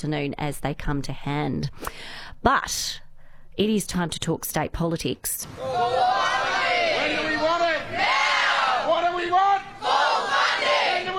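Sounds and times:
speech: 0:00.0 - 0:03.0, 0:03.6 - 0:06.3
striking teachers and staff from Victorian public schools chanting at a protest: 0:05.5 - 0:11.1
striking teachers shouting at a protest: 0:05.5 - 0:11.1.

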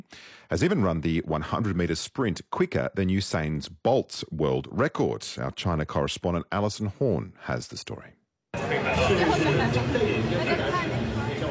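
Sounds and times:
speech: 0:00.1 - 0:11.0
bustling stadium crowd ambience in Beijing: 0:08.5 - 0:11.4.

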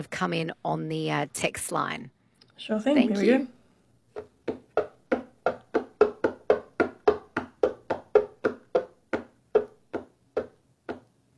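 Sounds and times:
speech: 0:00.0 - 0:03.6
tapping on a hollow box: 0:04.2 - 0:11.1.

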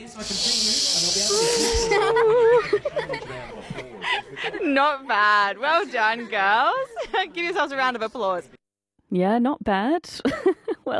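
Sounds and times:
several voices making a breathy hissing whoosh to mimic a sea breeze: 0:00.0 - 0:02.6
speech: 0:00.1 - 0:00.7, 0:03.0 - 0:10.9
people giggling and laughing: 0:01.6 - 0:04.8, 0:06.4 - 0:07.4, 0:10.3 - 0:10.9.

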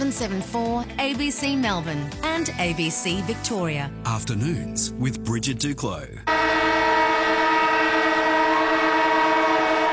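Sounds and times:
speech: 0:00.1 - 0:06.6
siren blaring: 0:06.3 - 0:09.9.

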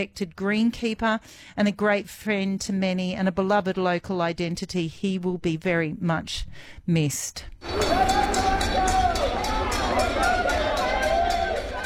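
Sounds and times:
speech: 0:00.0 - 0:08.5
crowd babble greeting runners finishing a 355 km running race: 0:07.6 - 0:11.8.

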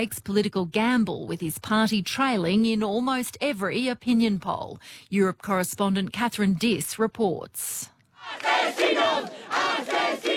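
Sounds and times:
speech: 0:00.0 - 0:10.3
protesters yelling at a street demonstration: 0:08.2 - 0:10.3.

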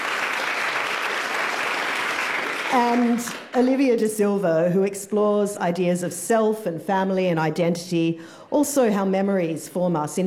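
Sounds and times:
audience applause for a poet and author at a literary reading: 0:00.0 - 0:03.6
speech: 0:02.7 - 0:10.2.

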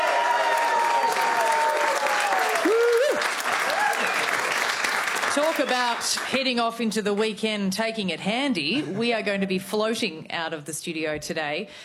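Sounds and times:
studio audience applause: 0:00.0 - 0:06.8
speech: 0:05.4 - 0:11.8.

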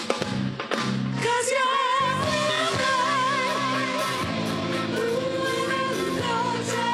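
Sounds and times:
cabaret show music: 0:00.0 - 0:06.9.

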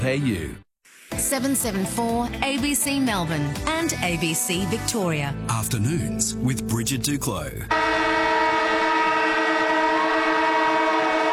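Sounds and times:
speech: 0:00.0 - 0:08.0
loud siren blaring: 0:07.7 - 0:11.3.

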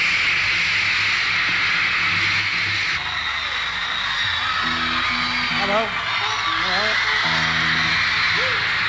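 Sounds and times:
crowd screaming at concert: 0:00.0 - 0:08.8.

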